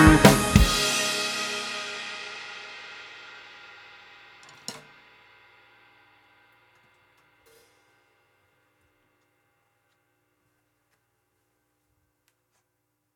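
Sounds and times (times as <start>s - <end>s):
bass riff: 0.0s - 2.7s.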